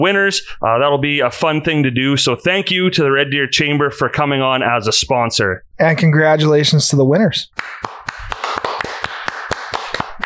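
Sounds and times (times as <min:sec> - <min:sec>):
speech: 0:00.0 - 0:08.2
applause: 0:07.6 - 0:10.2.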